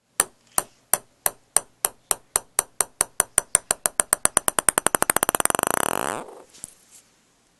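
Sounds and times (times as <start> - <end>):
ping-pong: 0.0 - 6.0.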